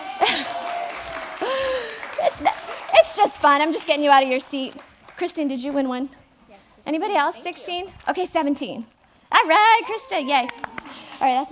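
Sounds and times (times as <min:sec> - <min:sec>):
audience clapping during a giveaway at a gathering: 0:00.0 - 0:05.9, 0:10.4 - 0:11.4
speech: 0:03.2 - 0:06.2, 0:06.9 - 0:11.5.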